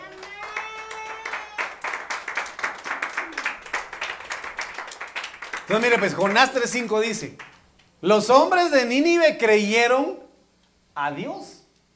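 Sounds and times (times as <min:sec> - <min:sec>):
audience clapping hands: 0:00.0 - 0:07.8
speech: 0:05.7 - 0:10.2, 0:11.0 - 0:11.6.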